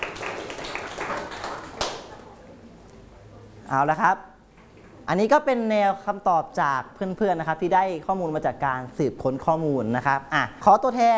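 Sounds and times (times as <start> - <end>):
classroom applause: 0.0 - 2.2
speech: 3.7 - 4.3, 5.1 - 11.1.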